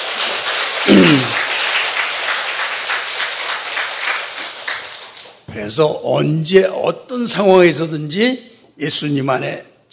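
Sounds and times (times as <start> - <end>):
audience applause: 0.0 - 5.4
speech: 5.7 - 9.9.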